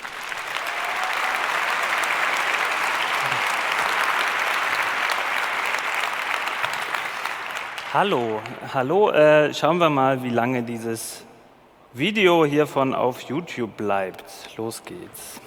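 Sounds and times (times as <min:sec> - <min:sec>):
audience applause welcoming a speaker: 0:00.0 - 0:08.9
speech: 0:07.9 - 0:11.3, 0:11.9 - 0:15.4.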